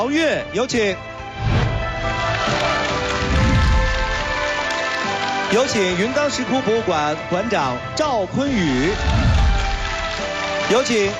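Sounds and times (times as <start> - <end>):
speech: 0.0 - 3.0, 5.5 - 9.2, 10.7 - 11.1
music: 0.0 - 11.1
audience applause: 1.8 - 6.5, 8.6 - 11.1.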